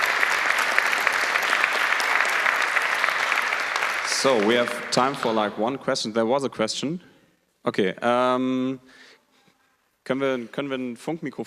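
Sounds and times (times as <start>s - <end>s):
audience applause after a talk: 0.0s - 5.8s
speech: 4.2s - 9.0s, 10.1s - 11.4s.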